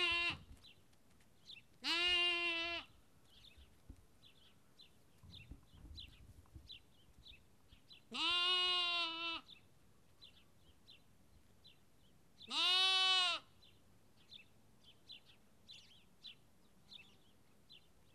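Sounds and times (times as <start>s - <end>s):
sheep lamb bleating in Kakopetria Cyprus: 0.0s - 0.5s, 1.8s - 2.9s, 8.1s - 9.5s, 12.5s - 13.5s.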